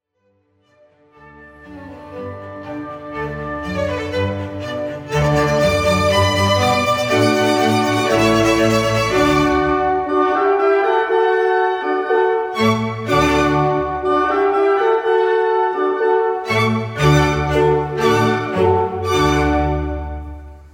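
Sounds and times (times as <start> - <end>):
cello concerto: 0.8 - 20.7.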